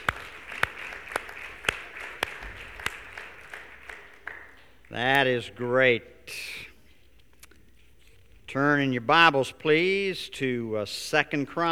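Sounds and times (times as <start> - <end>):
audience applause: 0.0 - 5.0
speech: 4.9 - 6.6, 8.5 - 11.6.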